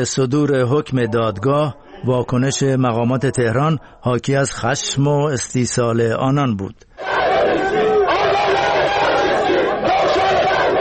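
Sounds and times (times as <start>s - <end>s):
speech: 0.0s - 7.2s
Ansar-e Hezbollah protest crowd shouting and chanting outside the German embassy, Tehran: 7.0s - 10.7s.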